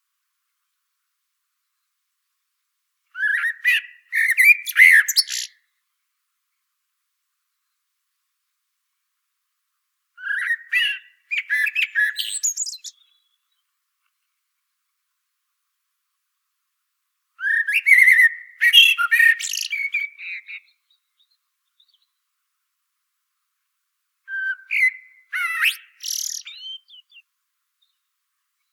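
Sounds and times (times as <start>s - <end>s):
common blackbird fluty song with scratchy twittering: 3.1s - 5.9s, 10.2s - 14.8s, 17.4s - 22.3s, 24.3s - 28.7s.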